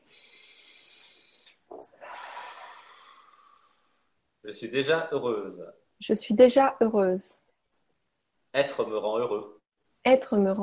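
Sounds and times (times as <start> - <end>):
deep breath: 0.0 - 4.1
speech: 4.4 - 7.4, 8.5 - 10.6.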